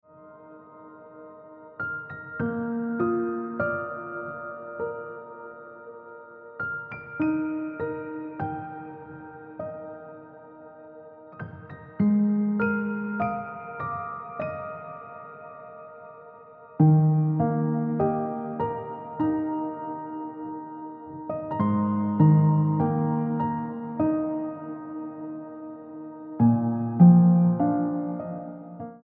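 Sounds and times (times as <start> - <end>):
piano music: 0.0 - 29.0.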